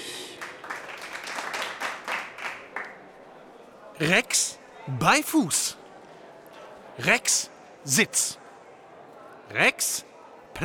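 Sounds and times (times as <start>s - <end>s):
audience applause: 0.0s - 3.1s
speech: 4.0s - 5.8s, 7.0s - 8.4s, 9.5s - 10.6s.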